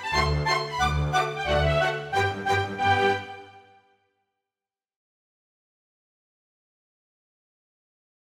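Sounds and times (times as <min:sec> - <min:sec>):
polka music: 0:00.0 - 0:03.9.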